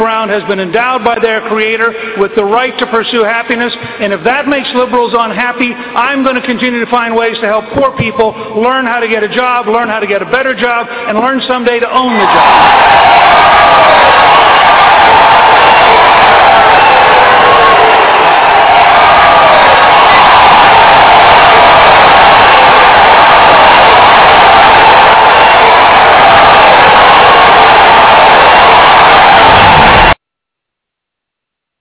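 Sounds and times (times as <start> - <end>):
speech: 0.0 - 14.0
audience applause: 12.2 - 30.2.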